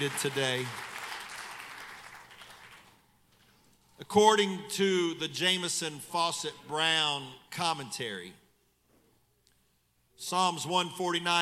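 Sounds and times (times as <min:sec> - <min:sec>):
speech: 0:00.0 - 0:00.9, 0:04.0 - 0:08.4, 0:10.2 - 0:11.4
audience hand clapping: 0:00.0 - 0:03.0.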